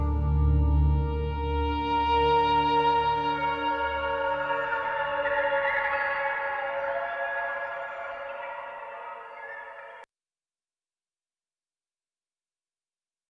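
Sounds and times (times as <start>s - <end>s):
sewers ambience theme music: 0.0s - 10.0s.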